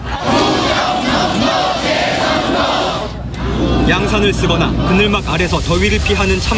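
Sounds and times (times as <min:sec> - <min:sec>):
rally crowd chanting slogans: 0:00.0 - 0:03.9
speech: 0:03.9 - 0:06.5.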